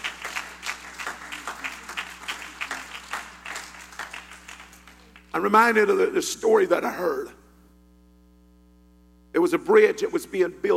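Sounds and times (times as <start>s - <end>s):
large group clapping hands: 0.0s - 6.1s
speech: 5.4s - 7.4s, 9.4s - 10.7s.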